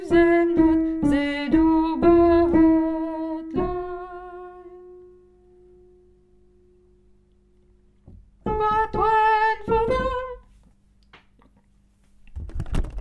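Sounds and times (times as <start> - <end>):
soprano singing: 0.0 - 5.4, 8.4 - 10.5.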